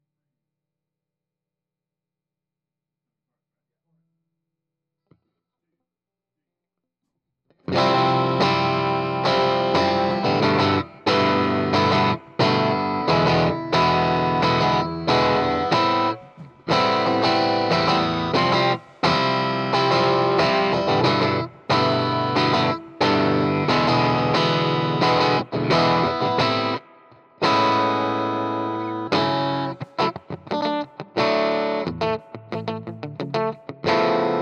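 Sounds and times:
guitar: 7.5 - 34.3.

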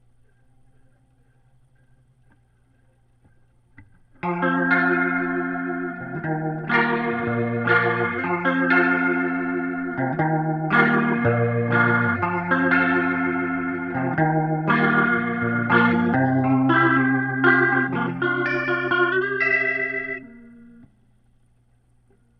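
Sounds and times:
guitar through Leslie rotary speaker: 0.0 - 22.3.

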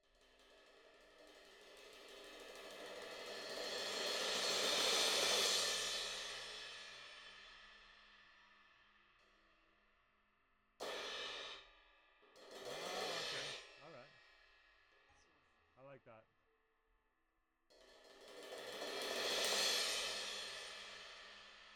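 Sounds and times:
cymbal: 0.1 - 8.8, 10.8 - 14.7, 17.8 - 21.7.

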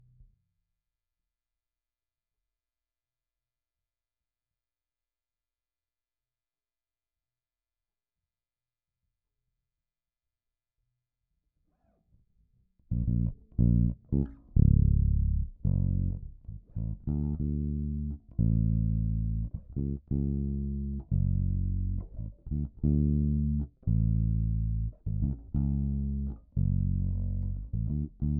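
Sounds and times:
bass guitar recorded by direct input: 12.9 - 28.3.

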